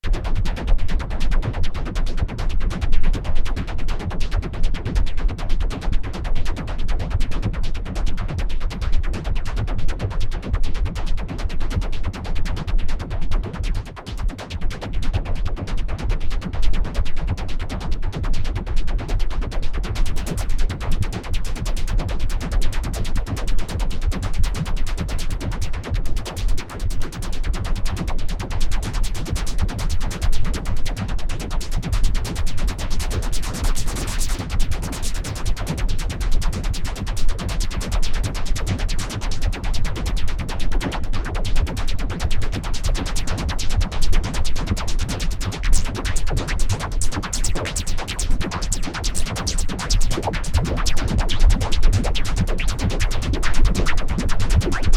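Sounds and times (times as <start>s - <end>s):
noise: 0.0s - 54.9s.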